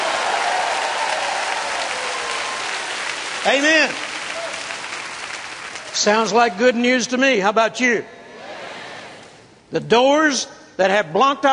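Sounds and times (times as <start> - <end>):
cheering and shouting: 0.0 - 3.6
audience applause: 0.0 - 6.4
speech: 3.4 - 4.1, 6.0 - 8.2, 9.7 - 11.5.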